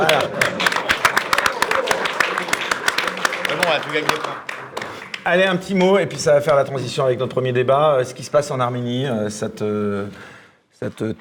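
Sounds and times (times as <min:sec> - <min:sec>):
applause: 0:00.0 - 0:05.7
speech: 0:03.7 - 0:04.5, 0:05.2 - 0:11.2.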